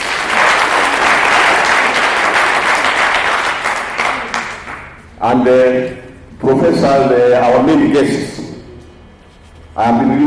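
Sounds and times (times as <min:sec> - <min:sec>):
audience applause: 0:00.0 - 0:05.0
speech: 0:05.2 - 0:08.4, 0:09.8 - 0:10.2.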